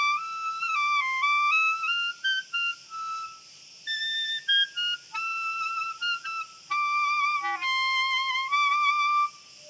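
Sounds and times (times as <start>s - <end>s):
cricket chorus trilling: 0.0s - 9.6s.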